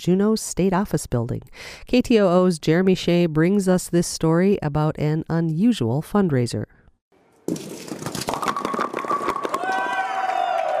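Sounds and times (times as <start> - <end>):
speech: 0.0 - 6.8, 7.5 - 8.0
bowling pins knocked around echoing in the State Office Building: 7.5 - 9.9.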